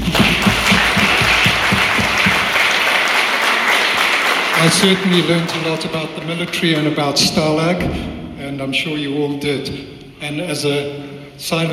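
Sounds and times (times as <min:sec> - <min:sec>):
audience applause: 0:00.0 - 0:07.0
speech: 0:04.6 - 0:11.7.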